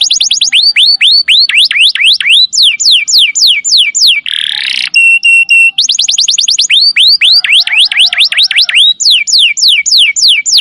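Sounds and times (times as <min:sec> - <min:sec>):
canary singing: 0:00.0 - 0:10.5.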